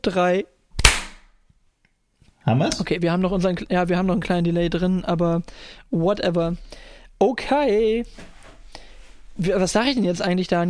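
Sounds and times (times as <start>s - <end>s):
speech: 0.0s - 0.6s, 2.4s - 8.8s, 9.4s - 10.6s
single hand clap for audio sync: 0.8s - 1.3s.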